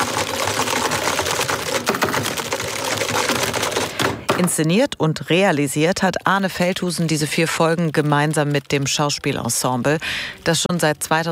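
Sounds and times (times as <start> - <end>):
heavy typing on computer keyboards: 0.0 - 4.6, 6.0 - 9.9
speech: 4.4 - 11.3.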